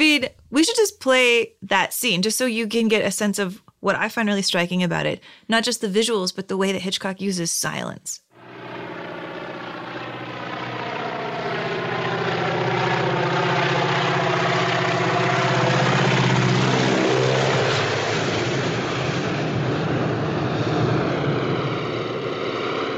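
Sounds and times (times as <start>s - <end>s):
speech: 0.0s - 8.2s
faint airplane engine drone in film scene: 8.3s - 22.9s.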